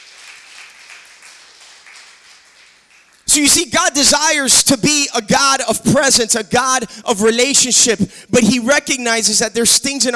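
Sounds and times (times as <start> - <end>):
audience clapping: 0.0 - 3.3
speech: 3.4 - 10.1.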